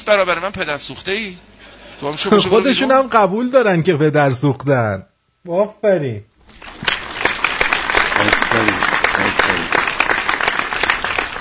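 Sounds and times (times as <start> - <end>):
speech: 0.0 - 6.7
group of girls clapping: 6.4 - 11.3.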